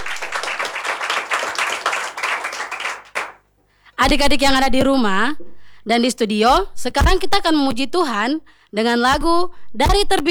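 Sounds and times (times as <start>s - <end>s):
hand clapping: 0.0s - 3.5s
speech: 4.0s - 10.2s.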